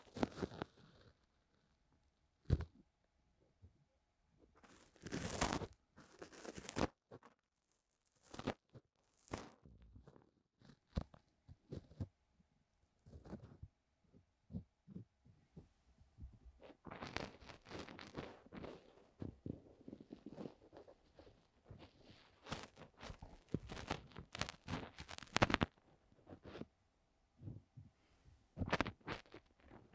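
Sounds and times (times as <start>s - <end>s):
ear cleaning scratching and rubbing: 0.0s - 1.4s, 4.6s - 12.2s, 13.0s - 13.7s, 16.5s - 26.7s, 28.6s - 29.9s.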